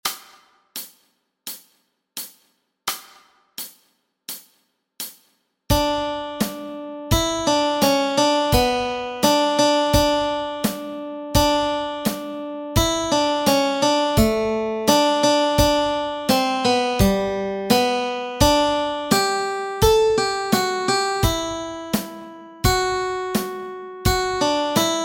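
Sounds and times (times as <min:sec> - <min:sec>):
melody track: 0:05.7 - 0:25.0.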